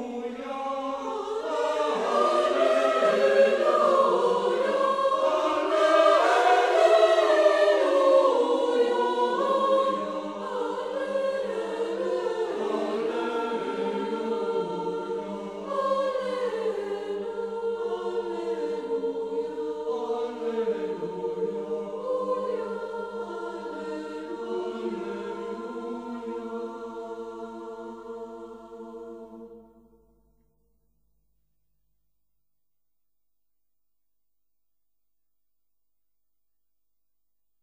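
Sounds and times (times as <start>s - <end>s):
chorus singing Gregorian polyphony: 0.0s - 30.1s.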